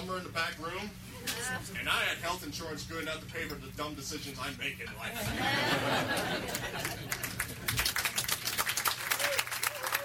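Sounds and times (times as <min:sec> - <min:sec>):
speech: 0:00.1 - 0:07.3
laughter: 0:05.2 - 0:07.8
audience applause: 0:06.4 - 0:10.0.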